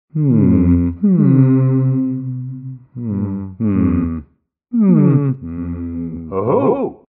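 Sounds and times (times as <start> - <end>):
person humming: 0.1 - 7.0.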